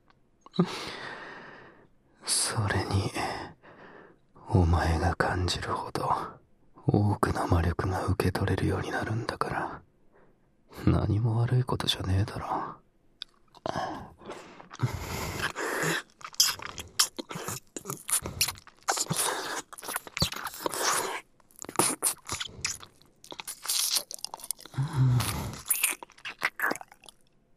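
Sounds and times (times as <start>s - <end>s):
speech: 0.6s - 1.0s, 4.6s - 9.8s, 10.7s - 12.8s
wet slurping mouth sounds: 13.6s - 27.2s.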